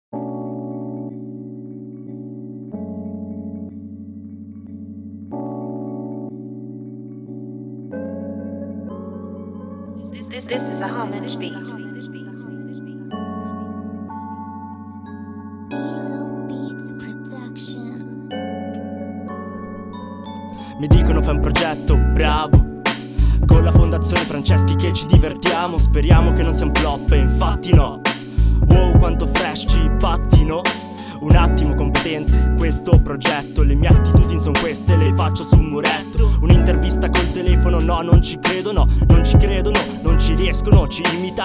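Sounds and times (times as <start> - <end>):
rap music: 20.4 - 41.4.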